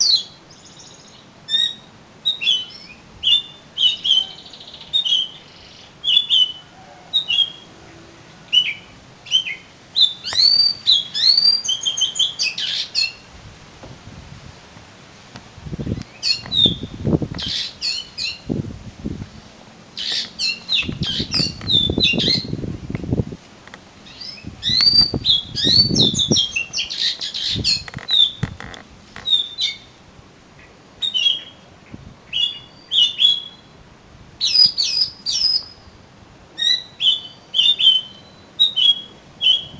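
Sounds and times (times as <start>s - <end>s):
Oriental magpie-robin singing: 0.0s - 13.2s, 15.8s - 18.5s, 20.0s - 22.6s, 24.0s - 30.0s, 30.6s - 31.6s, 32.3s - 33.8s, 34.4s - 35.9s, 36.6s - 39.7s.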